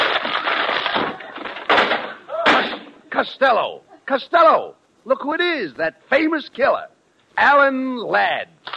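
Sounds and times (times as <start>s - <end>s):
door being smashed through: 0.0s - 3.0s
speech: 3.2s - 8.6s.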